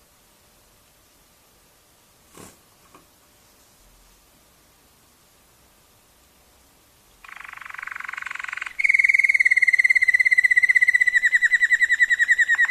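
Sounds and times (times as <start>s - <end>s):
Waterslager canary singing bubbling dipping notes: 7.2s - 12.6s.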